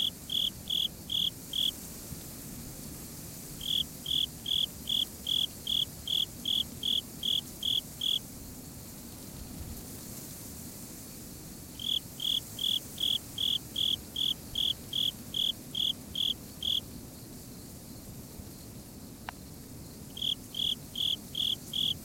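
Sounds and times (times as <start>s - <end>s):
Japanese burrowing cricket song: 0.0s - 2.0s, 3.3s - 9.2s, 11.0s - 22.0s.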